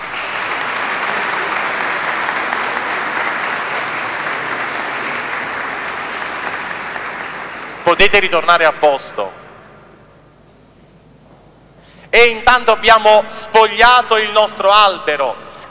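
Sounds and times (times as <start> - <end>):
audience applauding: 0.0 - 8.1
speech: 7.9 - 9.4, 12.2 - 15.4.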